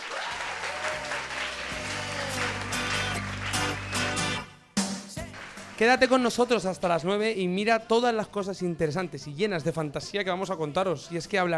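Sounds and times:
applause: 0.0s - 4.5s, 5.2s - 6.6s
speech: 5.8s - 11.5s.

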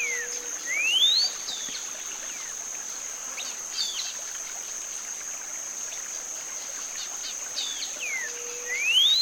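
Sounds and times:
Middle American grayish saltator whistled song: 0.0s - 1.4s, 8.0s - 9.2s
high insect drone: 0.0s - 9.2s.

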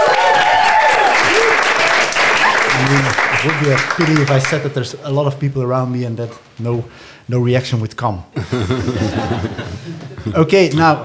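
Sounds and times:
faint whistles and cheers: 0.0s - 3.5s
live audience applauding: 0.0s - 4.8s
speech: 3.4s - 11.0s
laughter: 8.4s - 11.0s.

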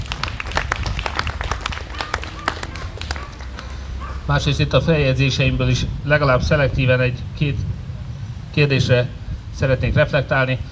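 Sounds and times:
crowd audience applause: 0.0s - 3.7s
speech: 4.3s - 7.7s, 8.5s - 10.7s.

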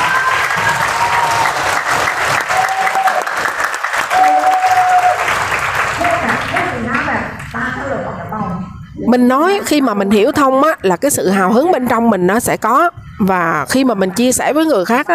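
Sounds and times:
voices cheering: 0.0s - 6.4s
audience applause: 0.0s - 7.1s
speech: 9.1s - 15.1s.

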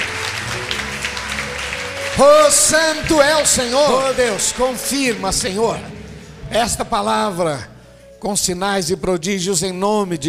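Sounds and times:
audience applause: 0.0s - 6.4s
sustained musical tone: 0.0s - 8.4s
speech: 2.2s - 10.2s.

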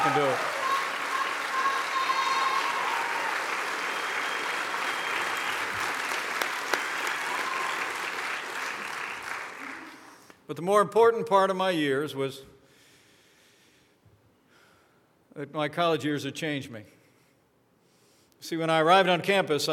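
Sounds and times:
audience applause: 0.0s - 10.2s
speech: 10.5s - 12.5s, 15.4s - 17.0s, 18.4s - 19.7s.

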